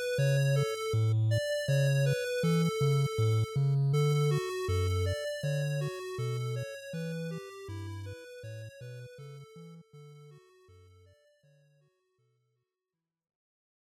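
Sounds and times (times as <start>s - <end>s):
NES RPG field music: 0.0s - 11.1s.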